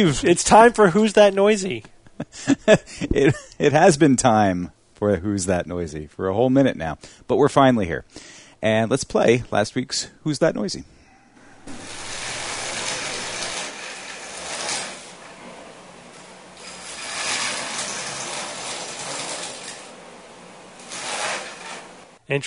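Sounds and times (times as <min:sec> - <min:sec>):
speech: 0:00.0 - 0:11.0
saw cutting dry ice: 0:11.6 - 0:22.2.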